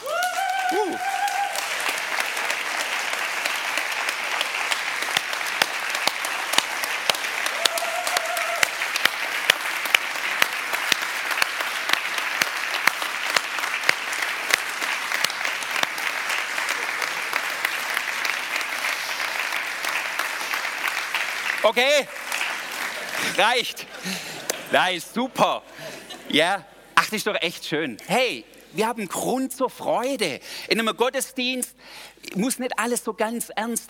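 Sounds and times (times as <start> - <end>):
audience applause: 0.0 - 24.9
speech: 21.7 - 22.2, 23.2 - 33.8.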